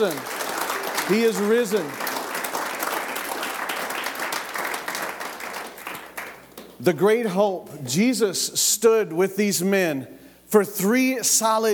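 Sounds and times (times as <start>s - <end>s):
speech: 0.0s - 0.3s, 1.1s - 2.1s, 6.8s - 11.7s
audience hand clapping: 0.0s - 6.9s.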